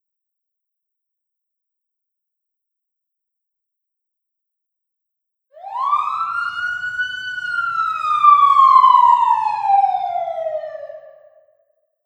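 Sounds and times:
siren in New York City: 5.6s - 11.6s.

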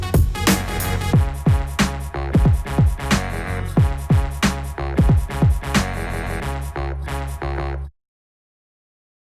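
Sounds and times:
groove instrumental: 0.0s - 6.6s.

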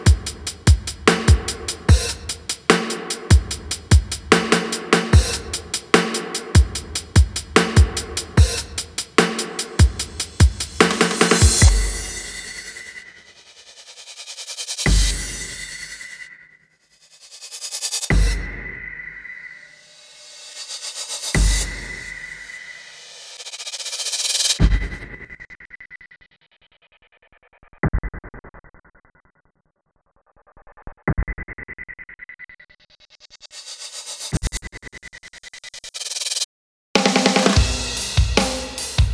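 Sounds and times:
drums: 0.0s - 16.2s, 17.4s - 25.4s, 33.4s - 36.4s, 37.0s - 39.1s.

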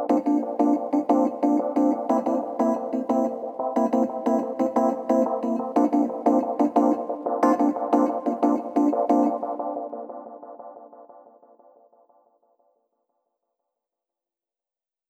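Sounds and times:
keys: 0.0s - 9.7s.

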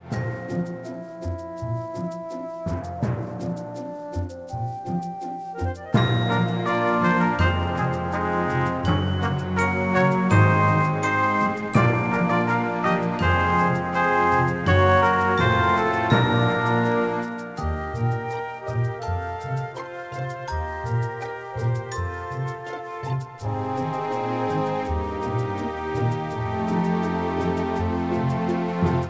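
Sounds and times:
music loop: 0.1s - 29.0s.

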